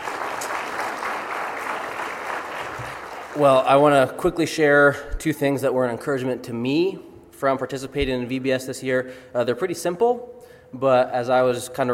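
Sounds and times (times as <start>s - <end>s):
audience applause: 0.0s - 3.6s
speech: 3.4s - 11.9s.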